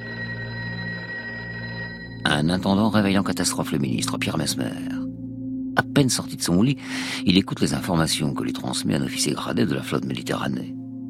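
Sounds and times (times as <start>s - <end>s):
telephone bell ringing at the Ministry of the Armed Forces in Paris: 0.0s - 2.3s
low hum: 0.0s - 3.0s
speech: 2.2s - 5.0s, 6.0s - 10.8s.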